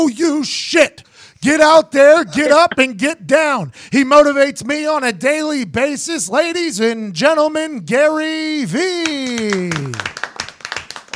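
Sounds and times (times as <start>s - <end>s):
speech: 0.0s - 10.2s
audience clapping: 9.0s - 11.1s.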